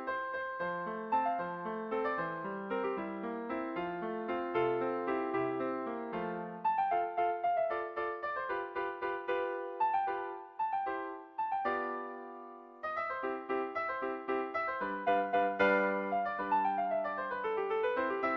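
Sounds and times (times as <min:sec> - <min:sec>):
piano sonatina: 0:00.0 - 0:18.3.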